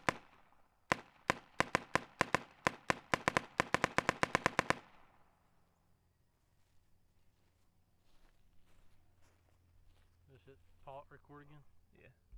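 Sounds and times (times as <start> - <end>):
Spyder long-barrel paintball gun firing, heard from behind: 0.0 - 5.4.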